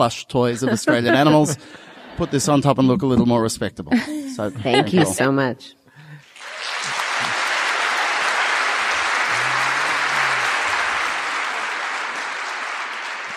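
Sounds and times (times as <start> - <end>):
speech: 0.0 - 5.8
laughter: 0.4 - 3.3, 4.0 - 5.2, 6.7 - 11.8
audience applause: 6.2 - 13.3.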